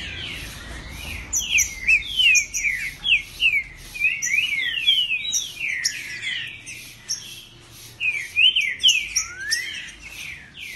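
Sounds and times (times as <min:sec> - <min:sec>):
Green-winged Saltator singing territorial whistles: 0:00.0 - 0:10.7.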